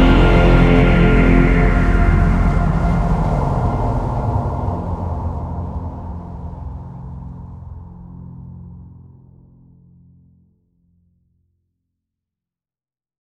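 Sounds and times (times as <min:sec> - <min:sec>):
action music without drums: 0:00.0 - 0:05.0.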